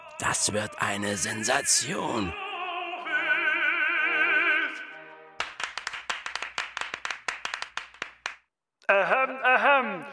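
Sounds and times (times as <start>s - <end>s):
person singing with vibrato: 0.0s - 5.1s, 8.8s - 10.1s
speech: 0.2s - 2.4s
audience clapping: 5.4s - 8.5s.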